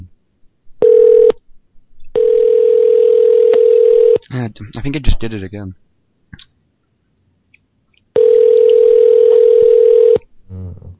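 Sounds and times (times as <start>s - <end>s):
telephone line steady electronic tone: 0.8s - 1.4s, 2.2s - 4.2s, 8.2s - 10.2s
speech: 4.4s - 5.8s.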